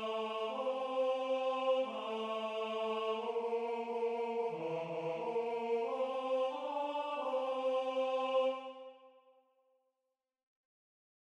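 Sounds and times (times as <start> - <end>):
tenor singing: 0.0 - 9.0.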